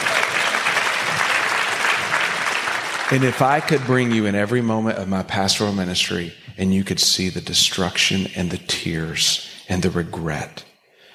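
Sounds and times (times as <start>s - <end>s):
audience applause: 0.0s - 4.6s
speech: 3.1s - 10.7s.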